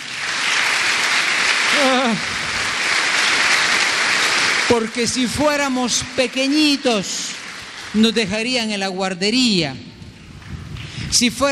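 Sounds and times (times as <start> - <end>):
church congregation applauding: 0.0 - 8.8
person calling out: 1.8 - 2.3
speech: 2.1 - 2.3, 4.7 - 7.3, 7.9 - 9.9, 11.1 - 11.5.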